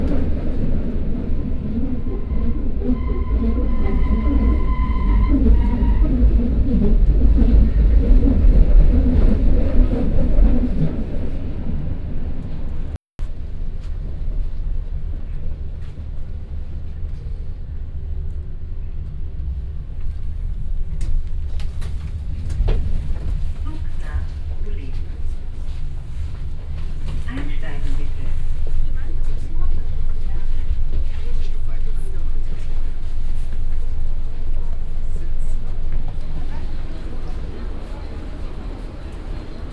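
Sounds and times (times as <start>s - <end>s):
underground train in Berlin: 0.0s - 39.7s.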